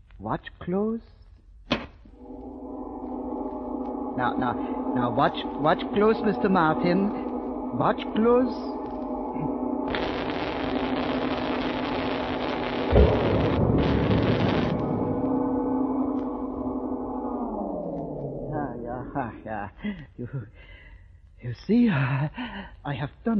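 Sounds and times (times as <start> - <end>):
speech: 0.2 - 1.2, 4.2 - 8.8, 19.6 - 20.8, 21.4 - 23.3
steady low hum winding down: 2.1 - 19.8
harsh electrical sparks crackling: 5.0 - 15.4
sharp firecracker-like bang: 12.8 - 15.4.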